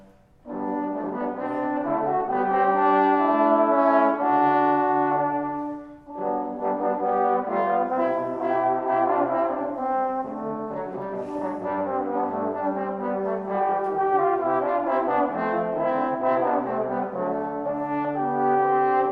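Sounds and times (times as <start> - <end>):
trombone quartet playing: 0.0 - 19.1.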